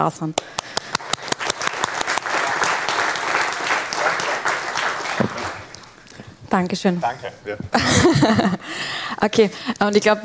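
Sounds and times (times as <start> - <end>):
speech: 0.0 - 0.8, 6.5 - 10.2
audience applause: 0.6 - 6.0
laughter: 7.2 - 8.7.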